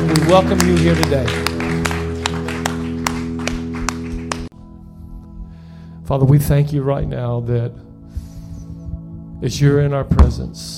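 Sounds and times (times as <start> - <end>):
audience clapping hands in unison: 0.0 - 4.5
sustained keyboard chords: 0.0 - 10.7
speech: 0.3 - 1.5, 6.1 - 7.8, 9.4 - 10.7.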